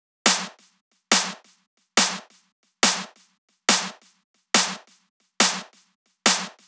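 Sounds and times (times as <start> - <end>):
140 BPM drum loop: 0.3 - 6.6
handclaps: 0.3 - 6.6.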